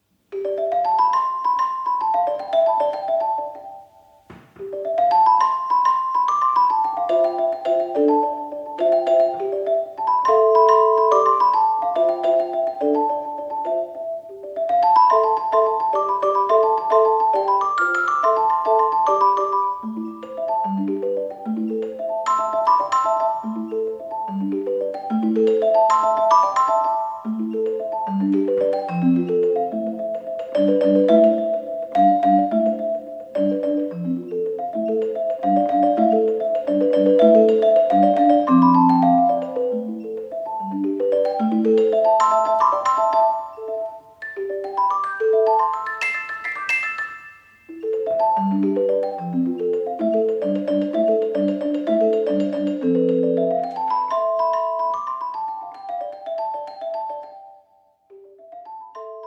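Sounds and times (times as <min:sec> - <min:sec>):
celesta piece: 0:00.3 - 0:59.2.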